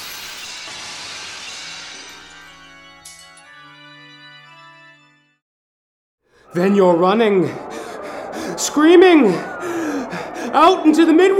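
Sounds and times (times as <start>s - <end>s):
mirror smashing into pieces: 0.0s - 3.4s
speech: 6.5s - 7.7s, 8.6s - 9.8s, 10.5s - 11.3s
laughter: 6.5s - 11.3s.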